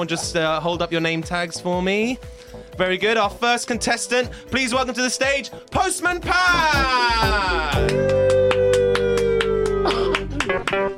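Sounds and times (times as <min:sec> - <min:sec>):
speech: 0:00.0 - 0:08.3
single person clapping for a contestant walking onto a stage: 0:07.7 - 0:10.9.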